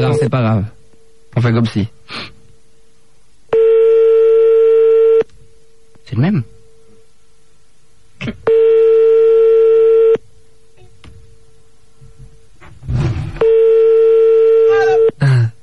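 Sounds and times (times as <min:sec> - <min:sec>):
speech: 0:00.0 - 0:02.3, 0:06.1 - 0:06.6, 0:08.2 - 0:08.8
telephone ringing tones after redialling: 0:03.5 - 0:05.3, 0:08.5 - 0:10.2, 0:13.4 - 0:15.2.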